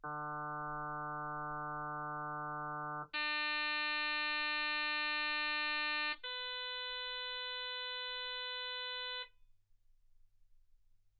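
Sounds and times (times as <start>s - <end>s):
harmonic sine tone: 0.0s - 9.3s.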